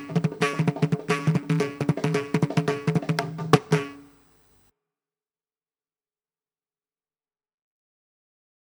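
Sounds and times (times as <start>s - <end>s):
tarang mridangam drumming in Carnatic music: 0.0s - 4.1s.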